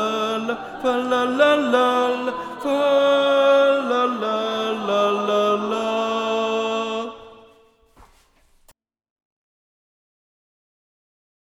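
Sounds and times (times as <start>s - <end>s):
tenores vocal choir: 0.0s - 7.6s.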